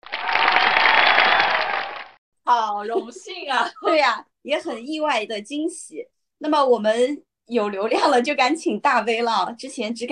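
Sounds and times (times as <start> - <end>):
applause: 0.0 - 2.2
speech: 2.5 - 10.0.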